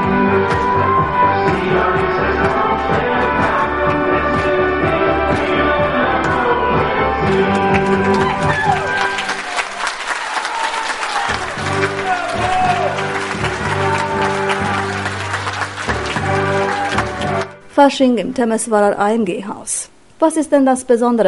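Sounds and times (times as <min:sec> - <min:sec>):
music: 0:00.0 - 0:18.7
audience applause: 0:07.3 - 0:17.6
speech: 0:17.8 - 0:21.2.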